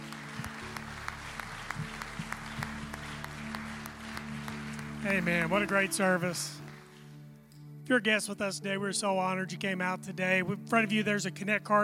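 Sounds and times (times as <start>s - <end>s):
audience clapping: 0.0s - 7.3s
speech: 5.0s - 6.6s, 7.9s - 11.8s.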